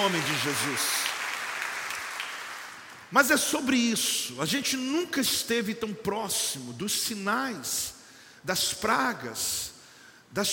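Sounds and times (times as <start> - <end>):
speech: 0.0 - 1.1, 3.1 - 9.7, 10.3 - 10.5
audience applause: 0.0 - 2.9.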